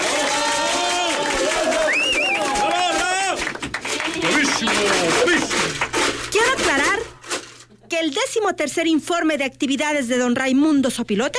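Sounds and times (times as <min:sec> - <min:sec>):
many overlapping voices cheering and calling out: 0:00.0 - 0:06.1
audience applause: 0:00.0 - 0:06.2
speech: 0:08.0 - 0:11.3.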